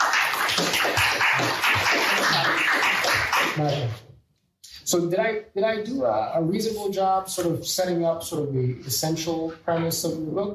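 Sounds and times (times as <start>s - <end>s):
audience applause: 0.0s - 3.9s
speech: 3.5s - 4.1s, 4.9s - 10.5s.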